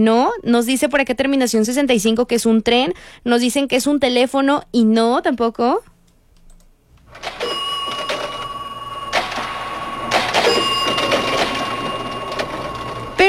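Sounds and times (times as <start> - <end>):
speech: 0.0 - 5.9
cash register: 7.1 - 13.2.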